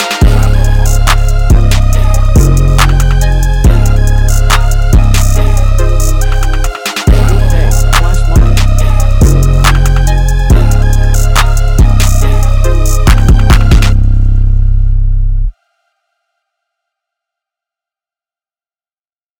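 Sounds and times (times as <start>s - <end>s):
music beat: 0.0s - 15.5s.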